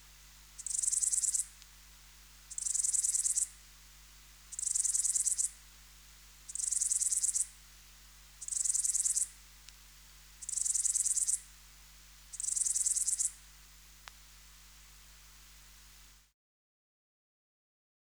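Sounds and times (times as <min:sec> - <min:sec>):
faint click: 0:00.0 - 0:01.8, 0:09.6 - 0:09.9, 0:14.0 - 0:16.2
bush-cricket buzzing song: 0:00.0 - 0:16.3.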